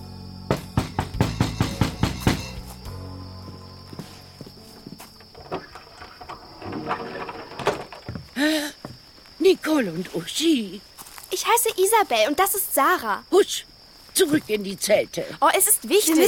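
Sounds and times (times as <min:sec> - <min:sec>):
knocking on a wooden hut door: 0:00.5 - 0:02.6
shuffling: 0:02.4 - 0:12.8, 0:13.9 - 0:16.2
speech: 0:09.7 - 0:16.2.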